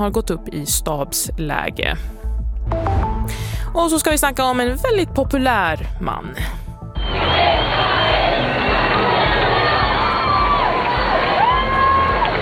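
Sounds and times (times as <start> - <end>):
speech: 0.0 - 6.6
huge street crowd shouting: 7.0 - 12.4.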